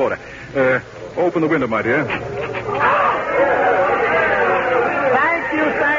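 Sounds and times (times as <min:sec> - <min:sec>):
speech: 0:00.0 - 0:02.2
large crowd of people outside shouting and cheering: 0:01.9 - 0:05.9.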